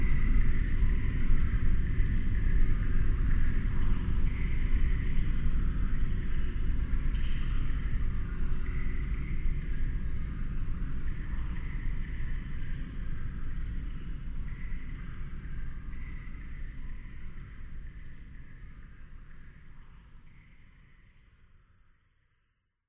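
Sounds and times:
dark eerie horror dungeon ambience: 0.0s - 22.2s.

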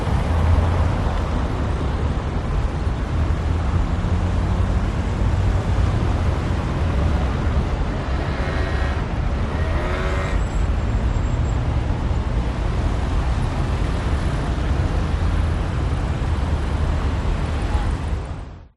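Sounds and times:
traffic in France: 0.0s - 18.7s.

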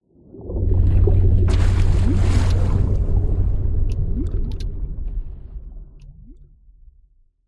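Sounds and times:
water whoosh: 0.5s - 6.0s.

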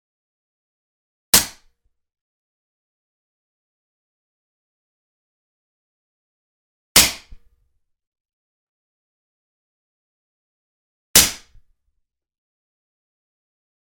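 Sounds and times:
Walther PPQ pistol: 11.2s - 11.6s.

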